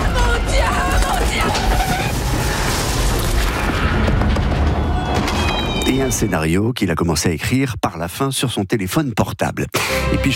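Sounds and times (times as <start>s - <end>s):
train and car pile-up crash: 1.0s - 5.6s
speech: 6.0s - 10.3s.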